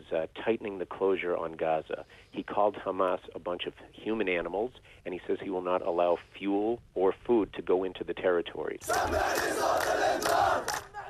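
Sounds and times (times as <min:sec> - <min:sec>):
speech: 0:00.1 - 0:10.9
large protesting crowd chanting: 0:08.8 - 0:11.0.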